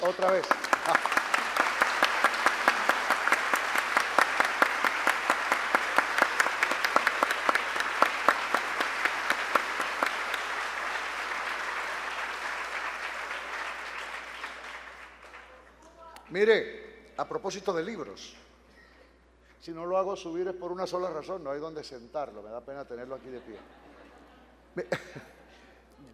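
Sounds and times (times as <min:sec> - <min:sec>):
speech: 0:00.0 - 0:01.1, 0:16.4 - 0:18.4, 0:19.6 - 0:23.8, 0:24.8 - 0:25.4
audience ovation: 0:00.0 - 0:15.8.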